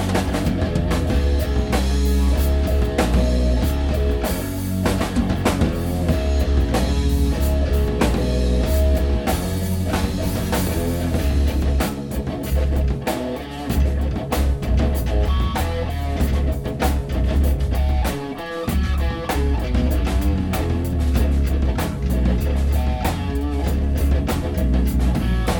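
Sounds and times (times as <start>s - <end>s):
sliced riff: 0.0s - 25.5s.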